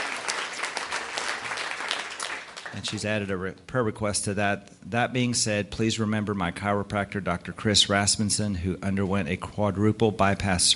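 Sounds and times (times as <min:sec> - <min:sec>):
church congregation clapping hands in praise: 0:00.0 - 0:03.2
speech: 0:02.7 - 0:10.7.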